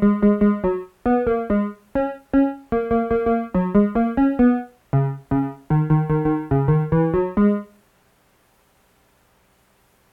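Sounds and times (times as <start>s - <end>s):
Korg synthesizer: 0.0s - 7.8s.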